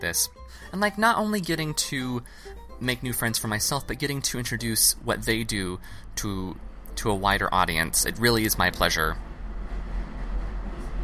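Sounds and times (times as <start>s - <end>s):
speech: 0.0s - 9.3s
subway train rumbling past: 2.6s - 11.0s.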